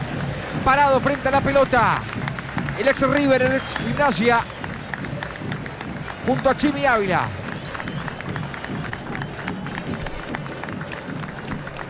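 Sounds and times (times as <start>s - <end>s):
stadium crowd applauding after minute of silence: 0.0s - 11.8s
speech: 0.7s - 2.2s, 2.8s - 4.6s, 6.3s - 7.4s.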